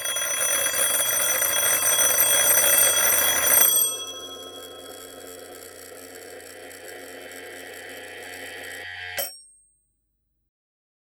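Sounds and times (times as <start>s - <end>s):
vintage telephones ringing: 0.0s - 8.4s.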